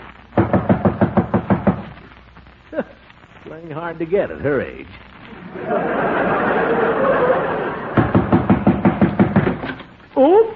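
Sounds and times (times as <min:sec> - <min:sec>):
loud knocks on a door: 0:00.4 - 0:01.8, 0:08.0 - 0:09.8
speech: 0:03.6 - 0:06.4
laughter: 0:05.3 - 0:08.2.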